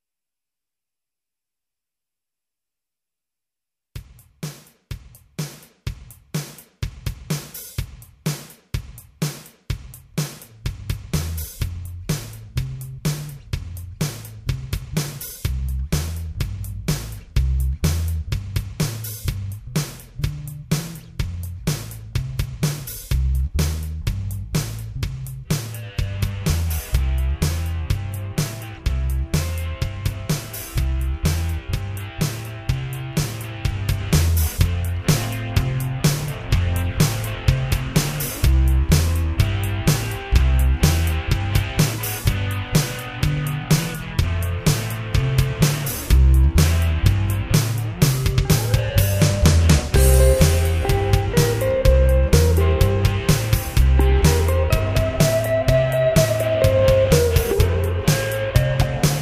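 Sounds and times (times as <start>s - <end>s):
jam session: 4.0s - 59.2s.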